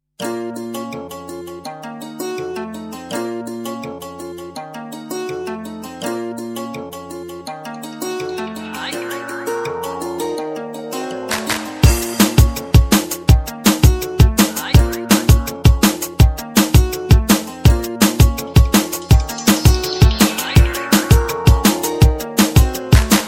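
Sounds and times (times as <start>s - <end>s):
drum and bass music: 7.8s - 23.2s.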